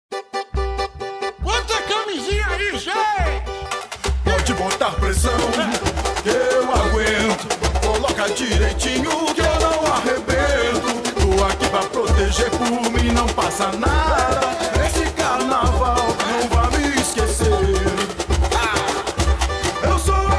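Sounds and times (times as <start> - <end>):
carnival samba music: 0.1 - 20.3.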